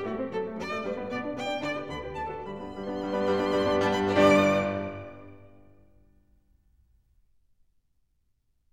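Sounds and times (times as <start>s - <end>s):
violin sonata scherzo allegro: 0.0s - 5.9s.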